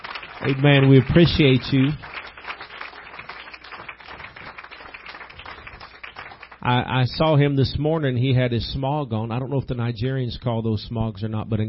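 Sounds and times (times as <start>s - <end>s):
audience hand clapping: 0.0s - 6.8s
speech: 0.4s - 2.1s, 6.6s - 11.6s.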